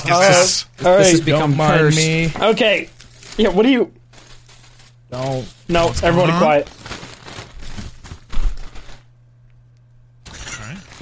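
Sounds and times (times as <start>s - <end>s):
speech: 0.0s - 4.0s, 5.1s - 6.9s
low steady hum: 0.0s - 11.0s
plastic food bag rustling while unpacking: 1.1s - 9.1s, 10.3s - 11.0s.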